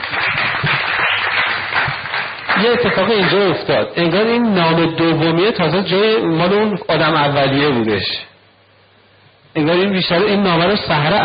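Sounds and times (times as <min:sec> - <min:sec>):
audience applause: 0:00.0 - 0:03.6
speech: 0:02.6 - 0:08.3, 0:09.6 - 0:11.2.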